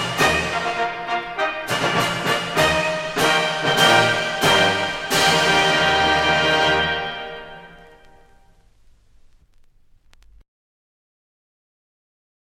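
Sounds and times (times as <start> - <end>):
military march music: 0.0 - 8.6.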